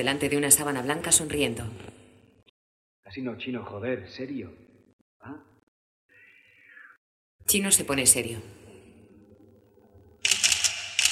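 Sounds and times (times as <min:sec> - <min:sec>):
speech: 0:00.0 - 0:02.0, 0:03.1 - 0:04.6, 0:05.2 - 0:05.5, 0:07.5 - 0:08.6
camera shutter clicks taking portrait photos: 0:10.2 - 0:11.0.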